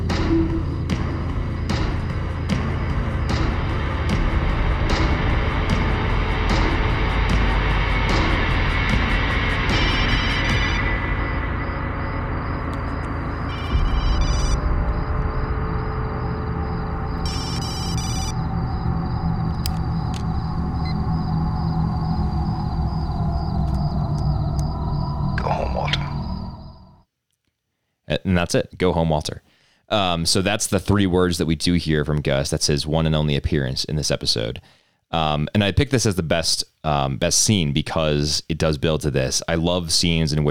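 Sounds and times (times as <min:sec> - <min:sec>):
loud dense music: 0:00.0 - 0:25.5
cell phone ringtone: 0:13.5 - 0:14.6, 0:17.2 - 0:18.4
speech: 0:28.4 - 0:40.4.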